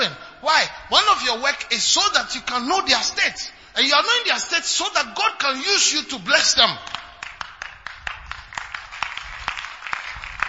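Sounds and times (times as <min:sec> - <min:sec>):
speech: 0:00.0 - 0:07.0
audience clapping: 0:06.8 - 0:10.4.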